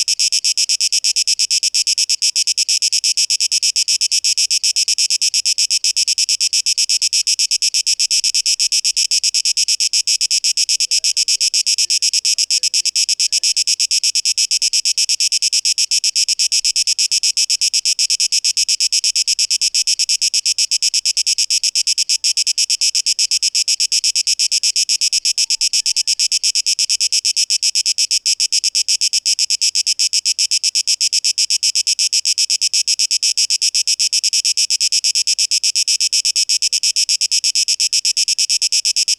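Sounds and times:
cicada song: 0.0s - 39.1s.

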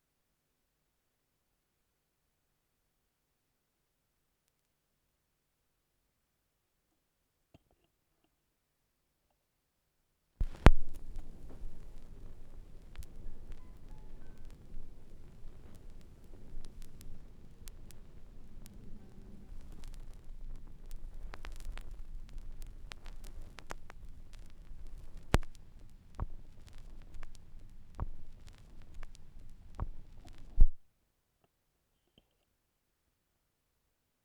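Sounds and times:
vinyl record noise: 10.4s - 30.8s.

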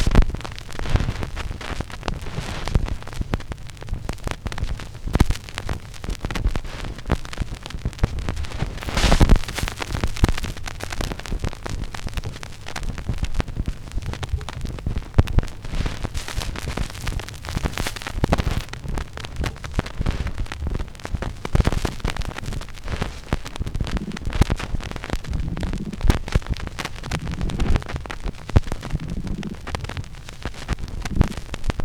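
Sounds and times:
vinyl record noise mix played backwards: 0.0s - 31.8s.

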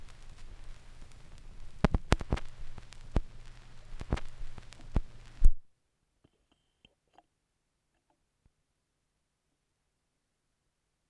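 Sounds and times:
vinyl record noise: 0.0s - 5.7s.

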